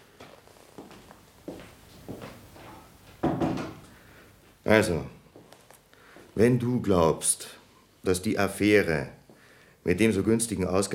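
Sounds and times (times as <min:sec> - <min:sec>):
soft footsteps: 0:00.0 - 0:04.7, 0:05.3 - 0:06.4
speech: 0:04.7 - 0:05.2, 0:06.4 - 0:09.2, 0:09.8 - 0:10.9.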